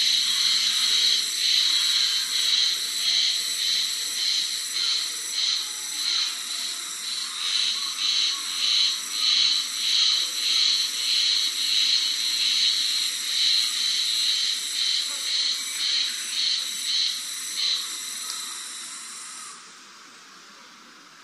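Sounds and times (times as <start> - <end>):
Japanese spring cicada buzzing: 0.0 - 20.3.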